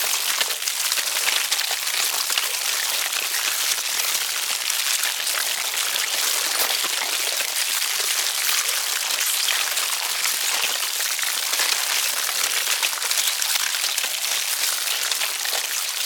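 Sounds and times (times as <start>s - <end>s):
insect colony devouring a carcass: 0.2s - 15.7s.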